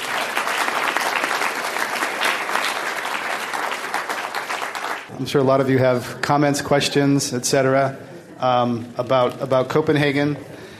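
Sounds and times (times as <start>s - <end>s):
audience applause for panelists: 0.0s - 5.1s
speech: 5.2s - 10.5s.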